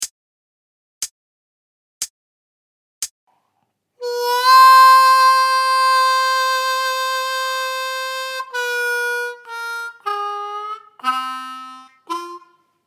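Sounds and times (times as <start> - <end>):
slow harmonica lick: 4.0 - 12.8.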